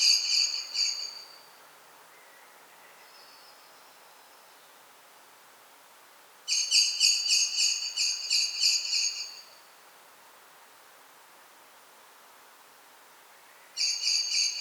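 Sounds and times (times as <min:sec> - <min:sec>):
common blackbird ringing calls: 0:00.0 - 0:01.4, 0:06.5 - 0:09.5, 0:13.8 - 0:14.5.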